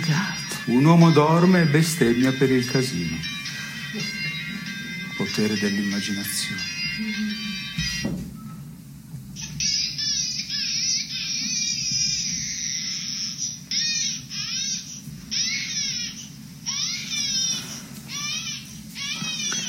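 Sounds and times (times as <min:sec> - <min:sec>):
baby crying: 0:00.0 - 0:08.1, 0:09.4 - 0:19.6
speech: 0:00.1 - 0:03.3, 0:03.9 - 0:04.2, 0:05.2 - 0:08.2.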